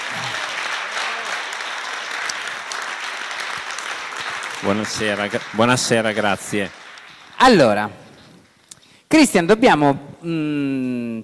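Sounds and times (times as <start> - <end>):
audience applause: 0.0 - 7.8
speech: 4.6 - 6.8, 7.4 - 8.0, 9.1 - 11.2.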